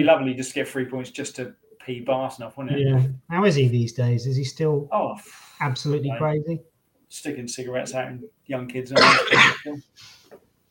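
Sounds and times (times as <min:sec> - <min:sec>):
speech: 0:00.0 - 0:10.4
coughing: 0:09.0 - 0:09.8.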